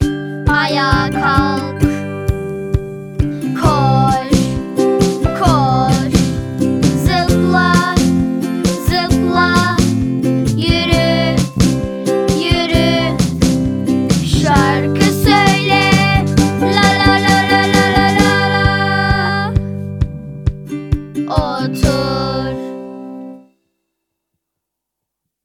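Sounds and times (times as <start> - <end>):
Turkish song: 0.0 - 23.5.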